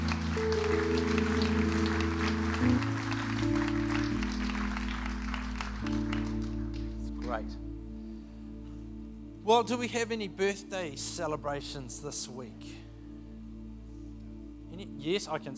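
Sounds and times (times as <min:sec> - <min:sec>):
church congregation clapping to welcome guests: 0:00.0 - 0:07.6
sustained keyboard chords: 0:00.0 - 0:15.5
speech: 0:07.4 - 0:07.6, 0:09.5 - 0:12.8, 0:14.8 - 0:15.5.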